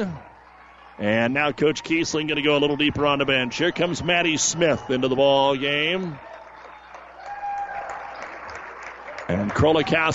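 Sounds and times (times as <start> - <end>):
speech: 0.0 - 0.3, 1.0 - 6.4, 9.3 - 10.1
crowd applause at basketball game: 2.2 - 10.1.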